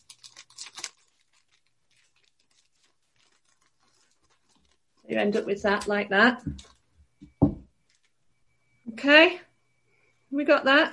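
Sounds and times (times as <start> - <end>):
paper crinkling as it is folded and crimped for a paper craft: 0.0 - 7.2, 7.8 - 8.2
speech: 5.1 - 6.8, 9.0 - 9.4, 10.4 - 10.9.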